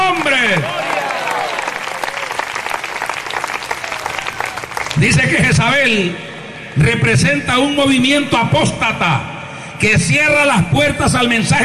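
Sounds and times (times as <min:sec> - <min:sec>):
audience applause: 0:00.0 - 0:05.2
speech: 0:05.0 - 0:11.6.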